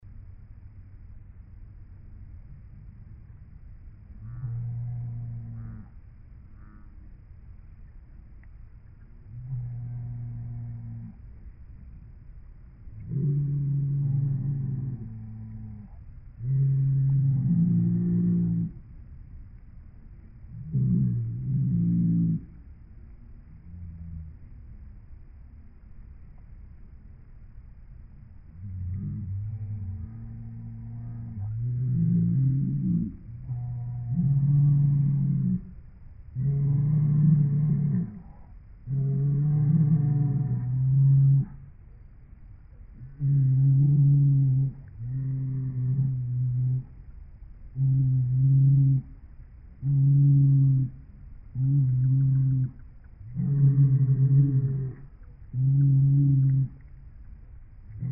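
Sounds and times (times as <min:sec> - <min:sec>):
cattle: 0:04.2 - 0:07.2, 0:09.3 - 0:11.3, 0:12.9 - 0:18.9, 0:20.5 - 0:22.7, 0:28.5 - 0:41.8, 0:42.8 - 0:57.0, 0:57.9 - 0:58.1.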